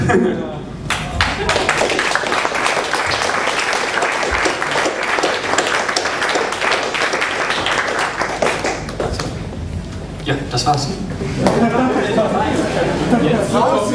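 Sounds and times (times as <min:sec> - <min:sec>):
speech: 0:00.1 - 0:00.6, 0:10.3 - 0:13.9
audience applause: 0:00.9 - 0:09.5
laughter: 0:11.2 - 0:13.9.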